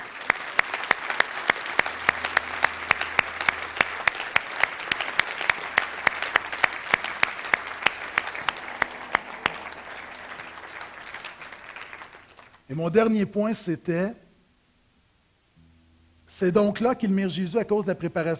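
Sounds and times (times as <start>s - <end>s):
audience clapping: 0.0s - 12.7s
speech: 12.8s - 14.2s, 16.4s - 18.3s.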